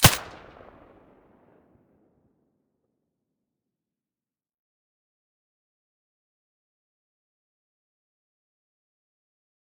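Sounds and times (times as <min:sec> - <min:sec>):
suppressed gunshot: 0:00.0 - 0:01.0.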